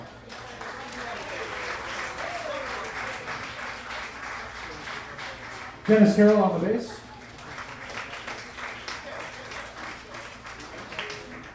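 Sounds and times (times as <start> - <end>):
audience applause welcoming a jazz band at the Origin Records Chicago Jazz Summit: 0.0 - 11.5
speech: 5.9 - 7.0.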